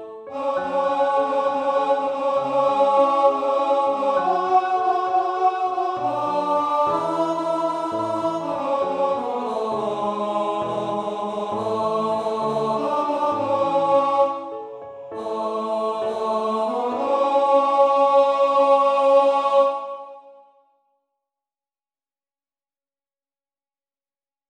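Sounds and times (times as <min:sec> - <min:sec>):
tenor singing: 0:00.2 - 0:14.5, 0:15.1 - 0:20.3.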